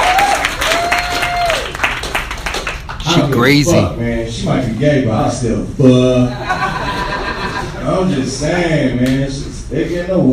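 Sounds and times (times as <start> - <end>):
audience applause: 0.0 - 3.7
speech: 3.2 - 6.6, 7.9 - 10.3
laughter: 6.3 - 8.0.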